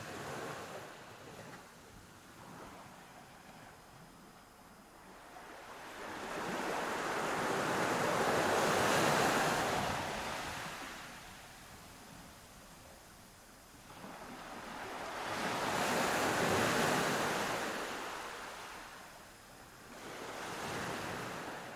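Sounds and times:
ocean waves on a beach: 0.0 - 21.7
steady hiss of wind: 0.0 - 21.7.

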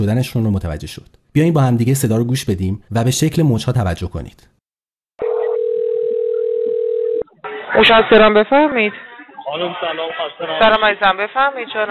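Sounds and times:
speech: 0.0 - 4.6, 7.8 - 11.8
telephone beep tone: 5.2 - 7.2.

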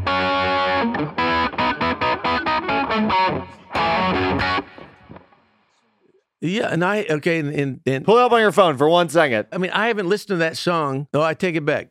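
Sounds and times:
heavily distorted rock guitar solo: 0.0 - 5.6
speech: 0.8 - 1.2, 6.4 - 11.8.

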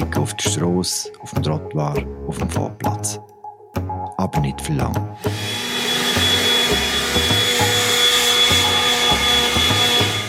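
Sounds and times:
speech: 0.2 - 3.3, 4.2 - 5.6
leaf blower running: 5.2 - 10.2.

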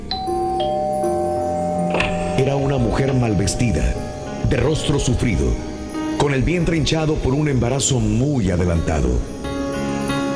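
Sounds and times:
doorbell chiming: 0.0 - 6.6
speech: 3.0 - 9.6.

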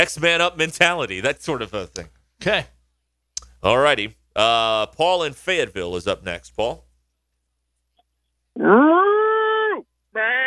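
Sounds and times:
speech: 0.0 - 2.7, 3.6 - 6.8, 8.6 - 8.9
person imitating horse whinny: 8.6 - 10.4.

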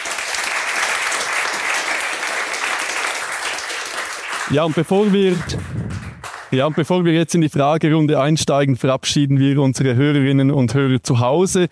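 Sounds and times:
audience applause: 0.0 - 6.9
speech: 4.5 - 5.8, 6.5 - 11.6.

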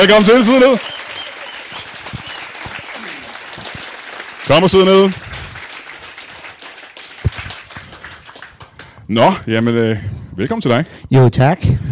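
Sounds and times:
speech: 0.0 - 1.0, 4.5 - 5.2, 9.1 - 11.9
studio audience applause welcoming a wine farmer on a talk show: 0.0 - 9.0.

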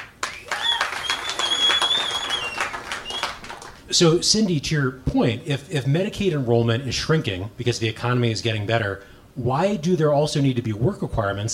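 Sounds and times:
audience applause: 0.0 - 3.9
faint high whistle-like tone: 0.4 - 3.4
speech: 3.9 - 11.5.

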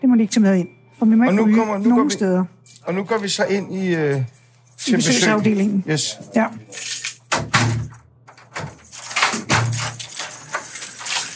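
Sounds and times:
speech: 0.1 - 7.0
doors opening and closing: 6.8 - 11.3.

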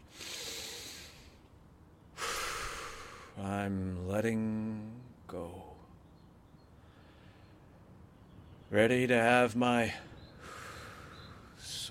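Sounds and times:
deep breathing: 0.0 - 1.4, 2.2 - 3.4, 10.1 - 11.7
speech: 3.4 - 5.7, 8.7 - 10.1.

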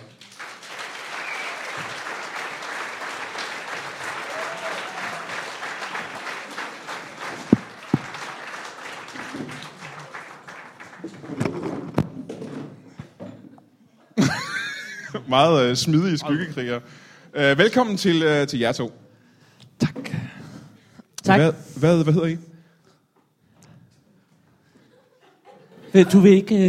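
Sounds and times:
laughter: 0.0 - 0.8, 2.6 - 4.3, 6.7 - 8.9, 19.0 - 21.4, 22.4 - 23.6, 24.8 - 26.6
live comedy show audience applause: 0.0 - 12.0
speech: 15.3 - 19.0, 21.3 - 22.5, 26.0 - 26.6.

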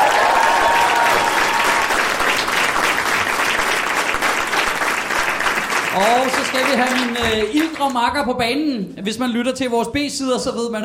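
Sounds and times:
audience applause: 0.0 - 8.0
speech: 6.0 - 10.8.

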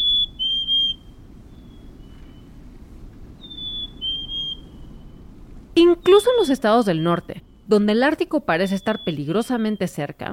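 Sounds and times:
Black-capped Chickadee whistled song: 0.0 - 2.6, 3.4 - 5.3, 5.9 - 7.7, 8.6 - 10.1
faint low hiss: 0.0 - 10.3
speech: 5.8 - 10.3.

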